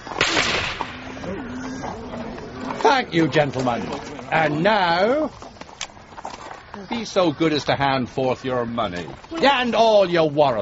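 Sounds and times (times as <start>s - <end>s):
gunshots fired into the air: 0.2s - 1.3s
speech: 2.8s - 5.4s, 6.8s - 10.6s.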